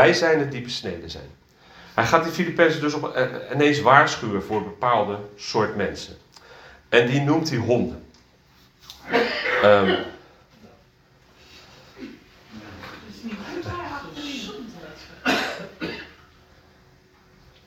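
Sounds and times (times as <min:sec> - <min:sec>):
speech: 0:00.0 - 0:01.4, 0:02.0 - 0:06.2, 0:06.9 - 0:08.0, 0:09.0 - 0:10.0
sneeze: 0:09.0 - 0:10.2.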